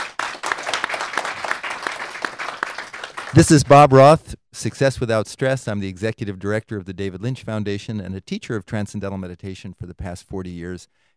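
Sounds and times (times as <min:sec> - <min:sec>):
group clapping: 0:00.0 - 0:04.0
speech: 0:03.3 - 0:11.1.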